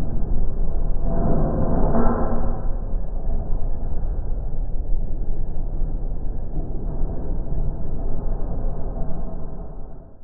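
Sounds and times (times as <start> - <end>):
dark sci-fi lair ambience in 5.1: 0.0 - 10.2.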